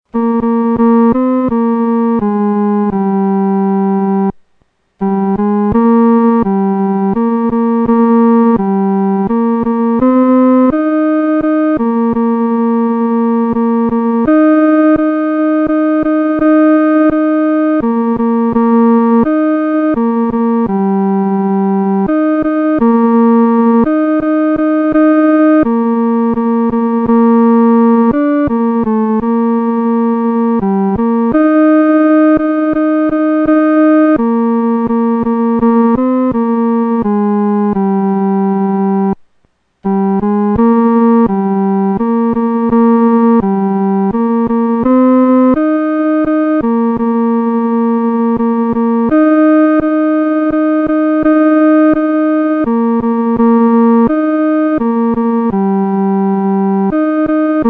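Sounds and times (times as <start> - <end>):
solo music third voice: 0.0 - 57.6.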